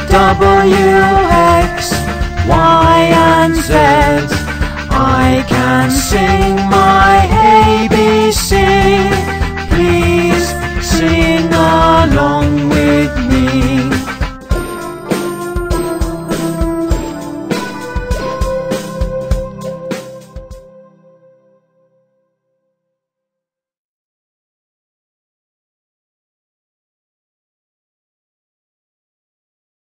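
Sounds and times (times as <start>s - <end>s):
children's song in English: 0.0s - 20.3s.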